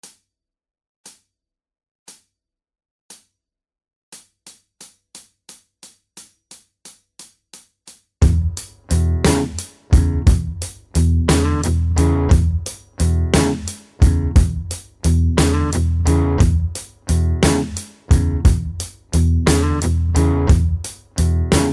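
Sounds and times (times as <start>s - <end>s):
blues guitar backing: 8.2s - 21.7s.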